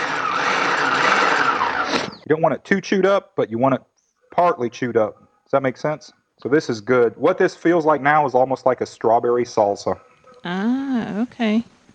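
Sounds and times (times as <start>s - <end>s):
food processor pulsing: 0.0s - 2.2s
speech: 2.3s - 11.7s.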